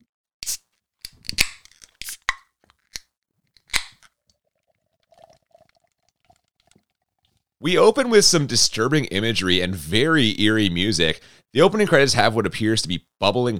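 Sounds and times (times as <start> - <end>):
beer can cracking open: 0.4 - 7.4
speech: 7.6 - 13.5.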